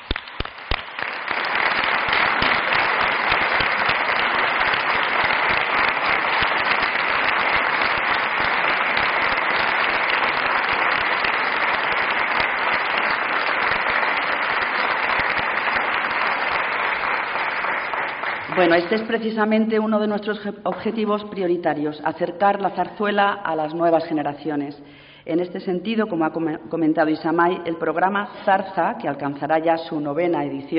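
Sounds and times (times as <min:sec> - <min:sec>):
audience applause: 0:00.0 - 0:19.1
speech: 0:18.7 - 0:30.7.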